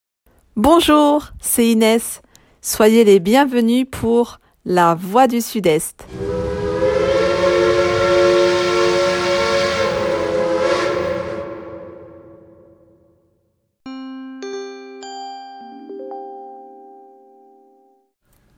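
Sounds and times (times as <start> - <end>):
speech: 0.6 - 6.5
steam train whistle: 6.0 - 12.8.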